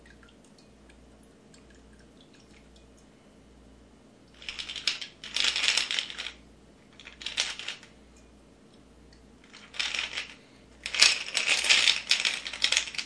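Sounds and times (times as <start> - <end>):
ice rattling in a cocktail shaker: 4.4 - 7.9, 9.4 - 13.0.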